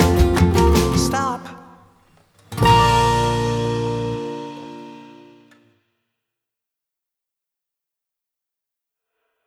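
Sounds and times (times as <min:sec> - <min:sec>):
instrumental music: 0:00.0 - 0:01.7, 0:02.5 - 0:05.7.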